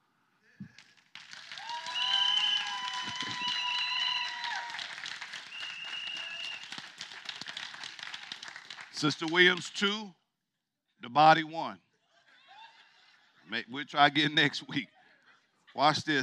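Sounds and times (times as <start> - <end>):
crowd clapping: 0.7 - 9.9
shrill whistles: 1.7 - 6.9
speech: 9.0 - 10.2, 11.0 - 11.8, 13.5 - 15.0, 15.8 - 16.2
laughter: 11.9 - 16.2.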